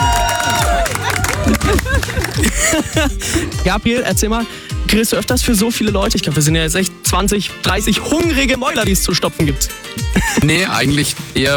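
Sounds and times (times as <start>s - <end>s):
group applause outdoors: 0.0s - 3.2s
laughter: 0.0s - 3.6s, 10.1s - 10.8s
speech: 2.8s - 11.5s.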